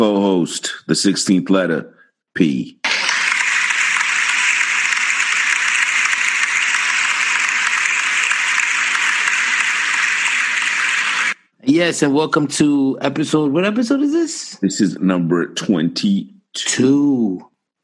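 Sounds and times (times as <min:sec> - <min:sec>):
speech: 0:00.0 - 0:02.9, 0:11.7 - 0:17.8
applause: 0:02.9 - 0:11.4.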